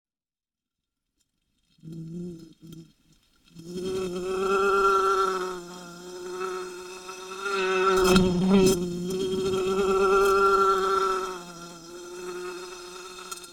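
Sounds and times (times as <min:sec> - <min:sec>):
wasp buzzing: 0:01.8 - 0:13.5.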